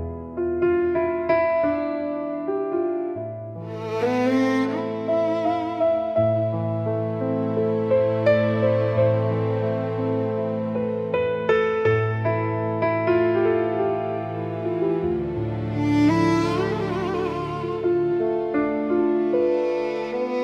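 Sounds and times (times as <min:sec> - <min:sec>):
romantic neoclassical instrumental music: 0:00.0 - 0:20.4.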